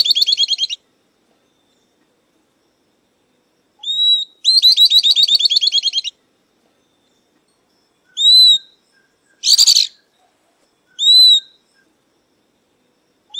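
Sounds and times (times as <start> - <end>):
southern beardless-tyrannulet song: 0.0 - 0.8, 3.8 - 6.2, 8.1 - 10.2, 10.9 - 11.9.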